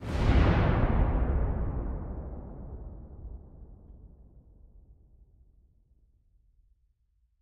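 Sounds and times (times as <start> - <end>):
explosion heard at a long distance: 0.0 - 4.2.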